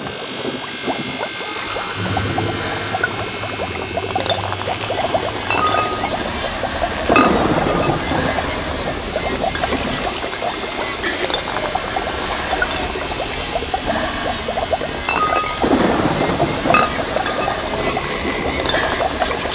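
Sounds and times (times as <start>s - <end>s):
1950s Frankenstein laboratory ambience: 0.1s - 19.5s.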